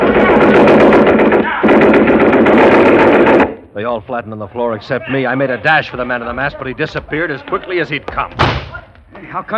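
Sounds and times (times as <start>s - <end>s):
Thompson submachine gun firing blanks: 0.0s - 3.6s
speech: 3.8s - 9.5s.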